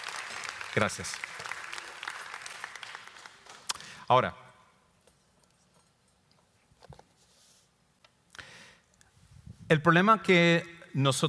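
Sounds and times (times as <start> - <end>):
audience applause: 0.0 - 3.8
speech: 0.8 - 1.4, 4.1 - 4.4, 9.7 - 11.2.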